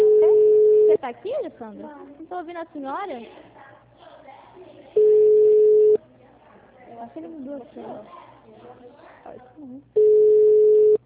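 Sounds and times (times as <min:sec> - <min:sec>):
telephone ringing tone: 0:00.0 - 0:01.0, 0:05.0 - 0:06.0, 0:10.0 - 0:11.0
faint sounds: 0:00.0 - 0:11.0
speech: 0:00.9 - 0:03.5, 0:06.9 - 0:10.4.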